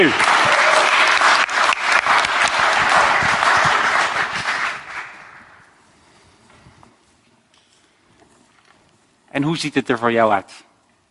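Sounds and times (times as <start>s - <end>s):
speech: 0.0s - 0.2s, 9.4s - 10.7s
crowd applause: 0.0s - 5.7s.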